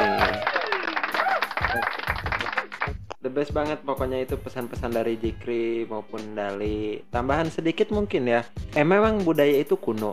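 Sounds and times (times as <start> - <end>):
audience applause: 0.0 - 3.0
speech: 3.4 - 10.1.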